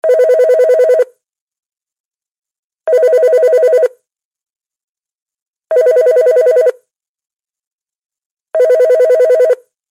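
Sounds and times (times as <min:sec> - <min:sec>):
basic tone ringtone: 0:00.0 - 0:01.1, 0:02.9 - 0:04.0, 0:05.7 - 0:06.8, 0:08.6 - 0:09.7.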